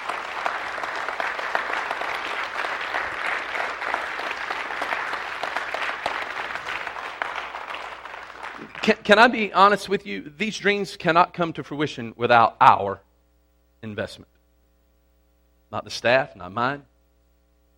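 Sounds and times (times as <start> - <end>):
audience applause: 0.0 - 9.1
speech: 8.9 - 13.0, 13.8 - 14.3, 15.7 - 16.9.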